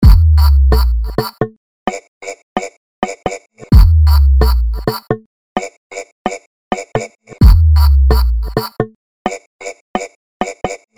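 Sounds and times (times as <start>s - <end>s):
exclusive music beat: 0.0s - 1.6s, 3.1s - 5.2s, 6.8s - 8.9s.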